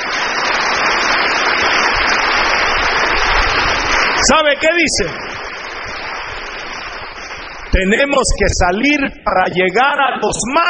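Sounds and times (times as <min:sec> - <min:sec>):
applause: 0:00.0 - 0:09.1
speech: 0:04.2 - 0:05.3, 0:07.8 - 0:10.6.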